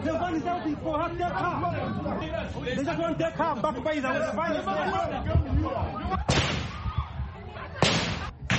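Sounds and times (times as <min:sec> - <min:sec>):
crowd chatter and commotion outside a court: 0:00.0 - 0:08.5
speech: 0:00.3 - 0:06.4
gunshots fired into the air to disperse a crowd: 0:06.3 - 0:06.8, 0:07.8 - 0:08.5.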